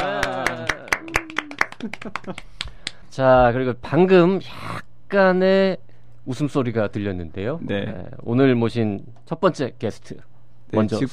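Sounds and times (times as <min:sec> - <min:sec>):
hand clapping: 0:00.0 - 0:03.0
speech: 0:01.8 - 0:11.1.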